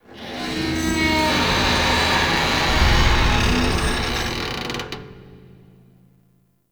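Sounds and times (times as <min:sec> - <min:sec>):
metal scrapes: 0:00.2 - 0:05.6.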